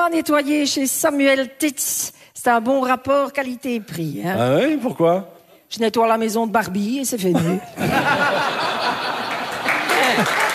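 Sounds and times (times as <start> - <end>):
speech: 0.0 - 9.1
laughter: 7.4 - 10.5
audience applauding: 8.6 - 10.5.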